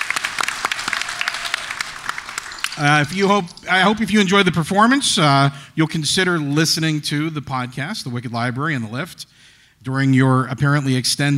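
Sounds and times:
audience applause: 0.0 - 4.2
speech: 2.8 - 11.3.

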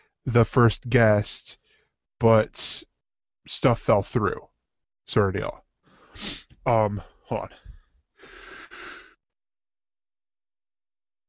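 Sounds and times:
speech: 0.2 - 1.6, 2.2 - 4.5, 5.1 - 5.6, 6.2 - 7.6
person sneezing: 6.2 - 6.5.

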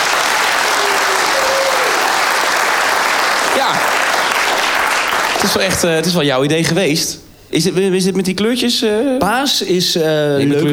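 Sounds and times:
audience applause: 0.0 - 7.2
speech: 5.4 - 10.7.

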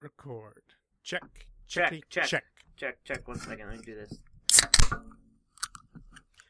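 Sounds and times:
speech: 0.2 - 5.0
can of Coke opening: 3.2 - 6.2.

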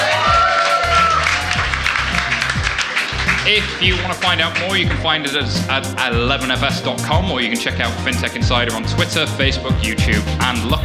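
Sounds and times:
audience cheering and applauding: 0.0 - 5.0
low rhythmic thumps: 1.6 - 7.3, 9.4 - 10.8
speech: 3.5 - 10.8.

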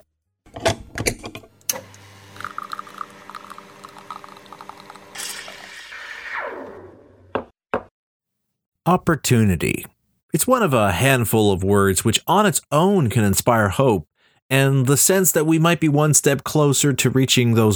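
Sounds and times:
espresso machine brewing with pump hum and gurgling hiss: 1.6 - 6.9
speech: 8.9 - 17.7.

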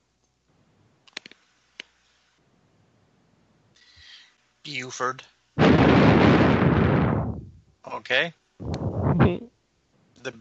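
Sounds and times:
speech: 4.7 - 5.4, 8.1 - 8.4
bomb explosion in the movie Invasion USA: 5.6 - 7.6.

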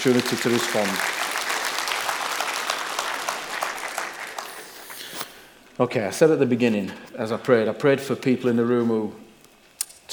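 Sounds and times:
speech: 0.0 - 1.2, 5.8 - 9.2
audience applause: 0.1 - 4.5.

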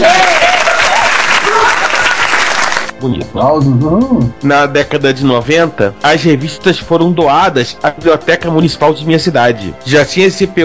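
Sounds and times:
applause sound effect: 0.0 - 3.0
speech: 3.0 - 10.6.

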